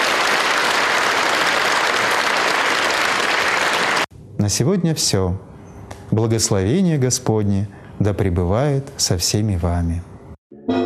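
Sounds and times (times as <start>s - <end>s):
audience applause after concert: 0.0s - 4.1s
speech: 4.4s - 5.5s, 6.1s - 10.1s.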